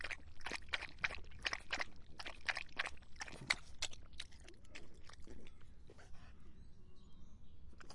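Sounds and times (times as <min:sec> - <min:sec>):
dog lapping water: 0:00.0 - 0:05.7.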